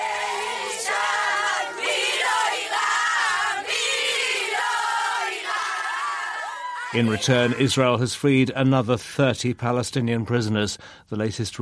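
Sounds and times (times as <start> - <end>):
large crowd chanting and singing: 0.0 - 7.7
high shouts: 0.0 - 8.0
speech: 6.9 - 11.6.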